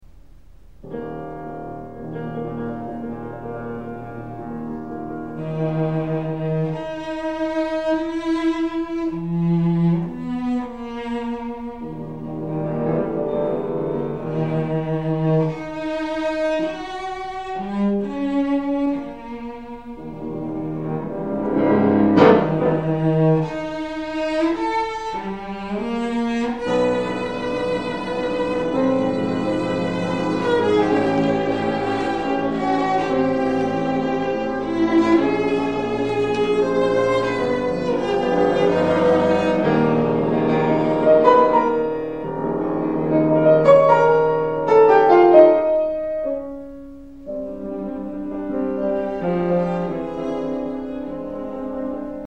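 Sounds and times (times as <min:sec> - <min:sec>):
cello sonata: 0:00.0 - 0:52.2.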